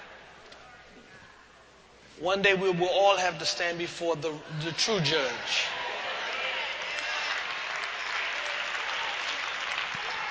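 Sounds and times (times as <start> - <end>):
speech: 2.2 - 5.8
audience applause: 5.7 - 10.2.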